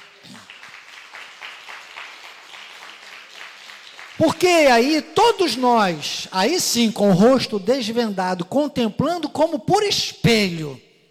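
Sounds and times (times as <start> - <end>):
audience applauding: 0.0 - 6.2
speech: 4.2 - 10.8.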